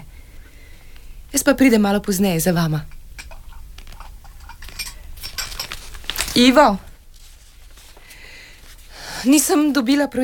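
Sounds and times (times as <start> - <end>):
speech: 1.5 - 2.9, 6.4 - 6.9, 9.2 - 10.2
dishes and cutlery clinking during washing up: 2.9 - 6.3.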